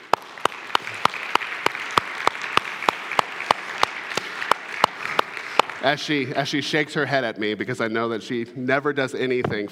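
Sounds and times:
audience applause: 0.0 - 6.5
speech: 5.8 - 9.7.

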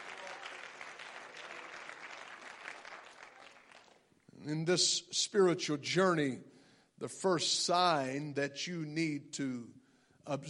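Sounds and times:
audience clapping hands: 0.0 - 4.2
speech: 4.4 - 10.4.

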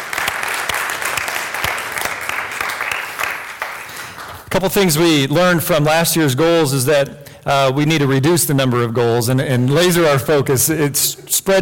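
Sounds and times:
church audience applause: 0.0 - 4.5
speech: 4.6 - 11.6.

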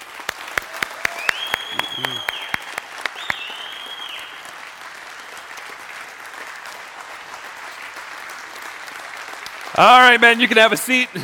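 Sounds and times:
audience clapping: 0.0 - 11.2
long high whistles: 1.2 - 4.4
speech: 9.8 - 11.2.

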